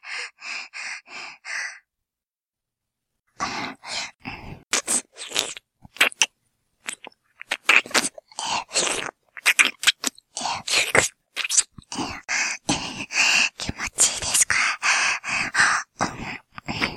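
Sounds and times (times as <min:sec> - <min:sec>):
ear licking sounds: 0:04.7 - 0:12.8
person whispering: 0:11.9 - 0:16.9.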